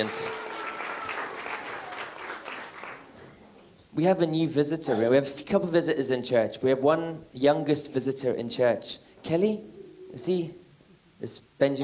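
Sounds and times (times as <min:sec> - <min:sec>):
speech: 0:00.0 - 0:00.4, 0:04.0 - 0:10.6, 0:11.2 - 0:11.8
audience applauding: 0:00.0 - 0:03.3.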